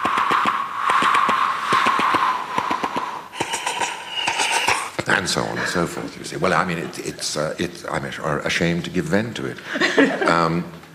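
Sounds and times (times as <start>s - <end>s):
voice imitating an old-fashioned steam train: 0.0s - 5.8s
speech: 5.1s - 10.8s
laughter: 9.6s - 10.6s.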